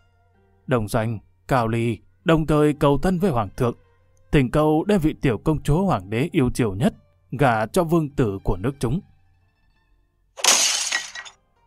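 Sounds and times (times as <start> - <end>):
speech: 0.7 - 9.1
teapot thrown and smashing: 10.4 - 11.4.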